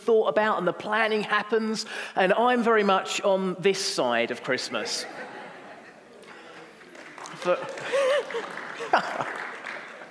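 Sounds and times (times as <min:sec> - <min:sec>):
speech: 0:00.0 - 0:05.4, 0:07.4 - 0:09.4
laughter: 0:04.7 - 0:10.0
audience applause: 0:06.6 - 0:10.0.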